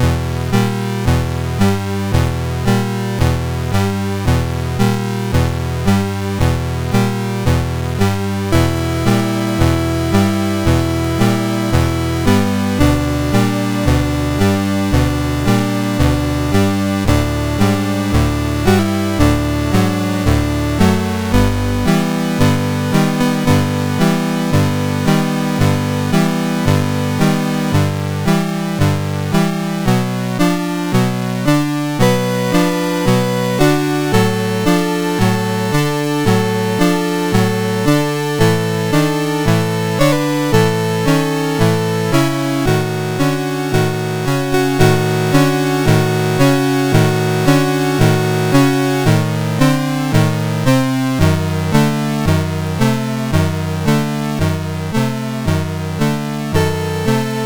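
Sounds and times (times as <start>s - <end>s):
prelude in A minor on MOS6581R2 SID chip: 0.0s - 57.4s.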